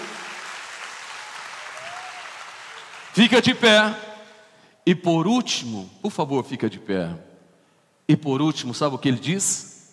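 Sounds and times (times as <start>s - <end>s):
audience applauding: 0.0s - 3.6s
speech: 3.2s - 4.1s, 4.9s - 7.3s, 8.1s - 9.7s.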